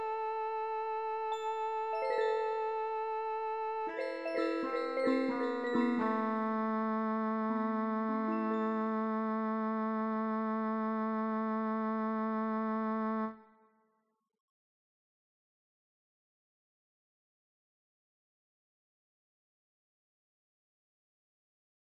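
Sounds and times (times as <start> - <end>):
music box: 1.1 - 6.9, 8.1 - 9.4
modern pelog scale cello music: 1.2 - 13.4.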